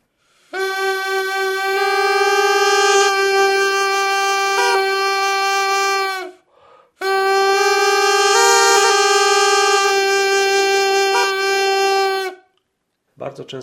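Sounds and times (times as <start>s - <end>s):
Indian snake charmer's reed pipe with buzzing drone: 0.6s - 6.2s, 7.0s - 12.2s.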